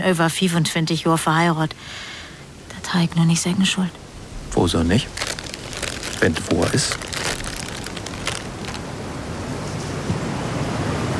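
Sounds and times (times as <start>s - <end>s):
speech: 0.0s - 2.2s, 2.9s - 5.3s, 6.2s - 7.0s
storm wind: 3.9s - 11.1s.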